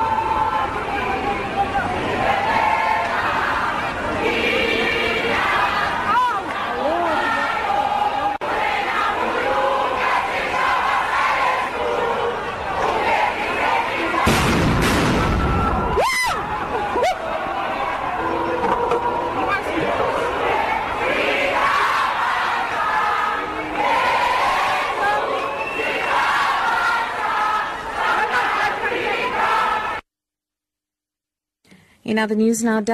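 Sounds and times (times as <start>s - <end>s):
large student protest crowd chanting and shouting: 0.0s - 30.0s
explosive bangs: 14.2s - 16.0s
speech: 32.2s - 32.9s.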